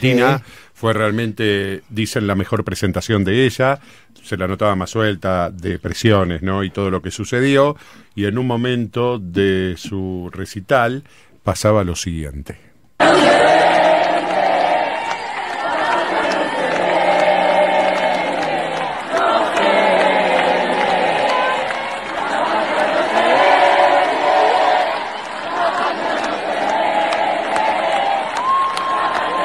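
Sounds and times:
speech: 0.0 - 13.7
concert audience cheering and applauding at a singer's recital in Argentina: 13.0 - 29.4.

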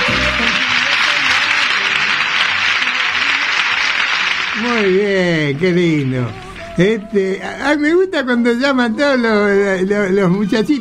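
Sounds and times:
audience applause: 0.0 - 6.8
speech: 4.8 - 10.7.

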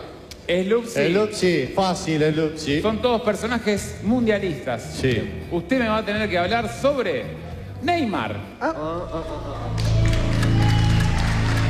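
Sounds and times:
speech: 0.5 - 9.9
audience applause: 9.6 - 11.6.

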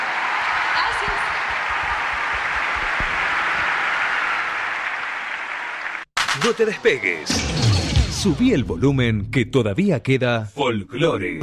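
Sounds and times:
audience applause: 0.0 - 7.0
speech: 6.4 - 11.4.

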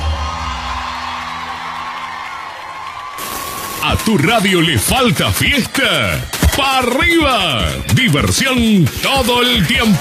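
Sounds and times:
audience applause: 0.0 - 6.8
audience cheering: 0.0 - 8.6
speech: 3.8 - 9.9.

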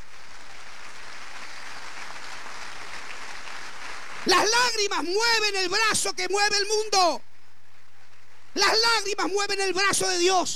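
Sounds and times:
audience applause: 0.0 - 5.5
speech: 4.2 - 7.3, 8.6 - 10.5.

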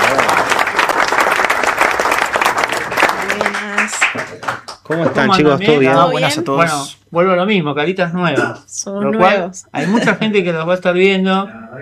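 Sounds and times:
audience applause: 0.0 - 5.2
speech: 4.9 - 11.8.

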